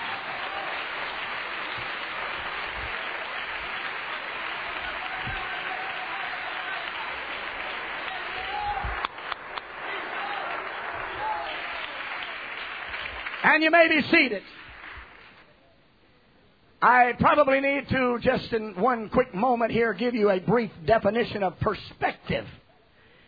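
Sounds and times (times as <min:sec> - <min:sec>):
audience clapping hands: 0:00.0 - 0:15.5
speech: 0:13.5 - 0:14.6, 0:16.8 - 0:22.6.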